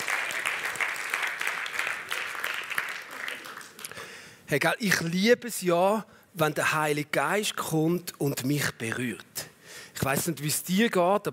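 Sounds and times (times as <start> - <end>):
audience applause: 0.0 - 4.1
speech: 4.5 - 9.3, 10.0 - 11.3.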